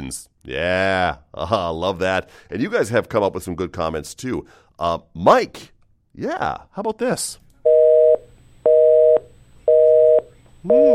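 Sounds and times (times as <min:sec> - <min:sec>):
speech: 0:00.1 - 0:07.4, 0:10.6 - 0:10.9
telephone busy signal: 0:07.7 - 0:10.9.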